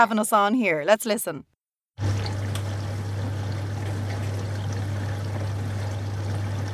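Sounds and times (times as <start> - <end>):
speech: 0.0 - 2.1
dishwasher running: 2.0 - 6.7.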